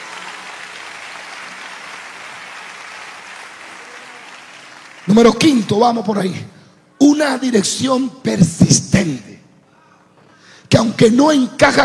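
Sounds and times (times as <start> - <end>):
audience applauding loudly: 0.0 - 6.0
speech: 5.0 - 9.2, 11.0 - 11.8.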